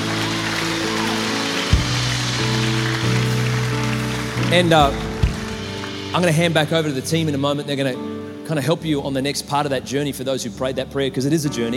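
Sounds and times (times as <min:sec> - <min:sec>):
audience applause: 0:00.0 - 0:06.8
speech: 0:04.5 - 0:05.1, 0:06.1 - 0:11.7.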